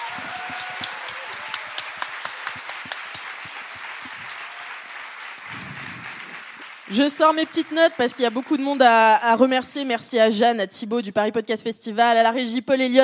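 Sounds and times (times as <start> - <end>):
audience applause: 0.0 - 9.2
speech: 6.9 - 13.0.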